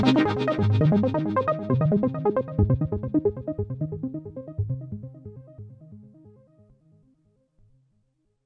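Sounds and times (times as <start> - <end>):
electronica demo on Korg microKORG synthesizer: 0.0 - 5.6.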